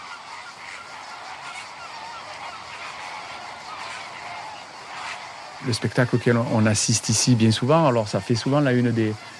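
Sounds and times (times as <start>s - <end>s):
flock of flamingos honking: 0.0s - 9.3s
speech: 5.6s - 9.3s.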